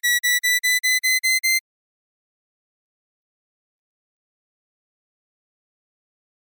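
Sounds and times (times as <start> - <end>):
physiological tone series: 0.1 - 1.6.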